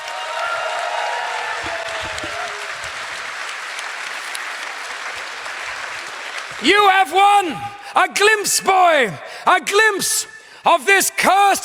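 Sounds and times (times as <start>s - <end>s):
audience clapping hands: 0.0s - 7.8s
speech: 6.6s - 11.6s.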